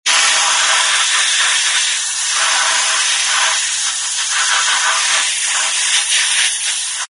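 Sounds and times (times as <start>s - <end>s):
dentist spray: 0.1s - 7.1s.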